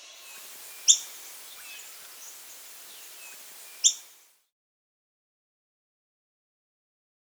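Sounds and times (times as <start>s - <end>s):
Montane Foliage-gleaner Anabacerthia calling: 0.2s - 4.3s.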